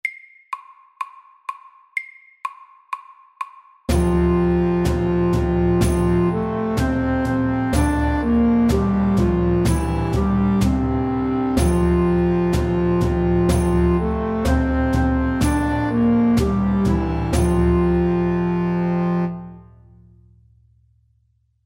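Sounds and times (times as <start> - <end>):
English melody: 3.9 - 19.6.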